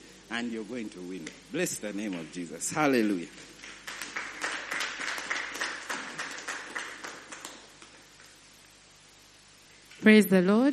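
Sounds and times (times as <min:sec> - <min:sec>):
speech: 0:00.3 - 0:03.6, 0:10.0 - 0:10.7
audience hand clapping: 0:01.9 - 0:08.3.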